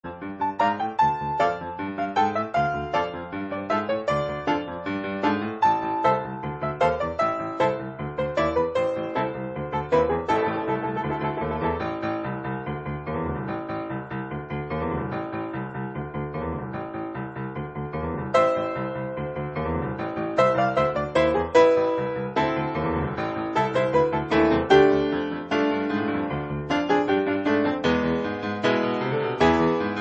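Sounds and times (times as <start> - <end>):
grand piano: 0.0 - 29.9.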